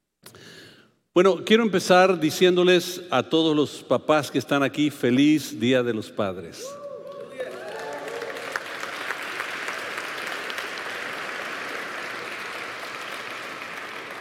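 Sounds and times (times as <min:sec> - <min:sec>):
speech: 0:01.2 - 0:06.8
mothers applauding fathers: 0:07.1 - 0:14.1.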